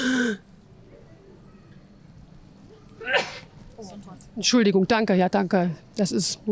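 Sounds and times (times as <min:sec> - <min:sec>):
person sneezing: 0:03.0 - 0:03.5
speech: 0:04.4 - 0:06.4.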